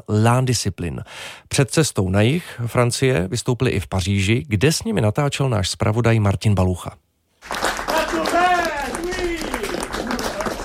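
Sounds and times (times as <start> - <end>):
speech: 0.0 - 7.6
audience clapping in a packed hall of the Paris studio Eberto: 7.4 - 10.6
people in the audience shouting bravo: 7.9 - 10.6.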